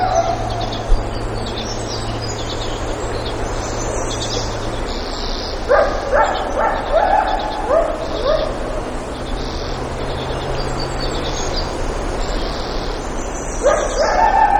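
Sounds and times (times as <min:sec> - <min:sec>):
coyote yipping and howling at Lake Clark Alaska: 0:00.0 - 0:11.7, 0:12.4 - 0:14.5.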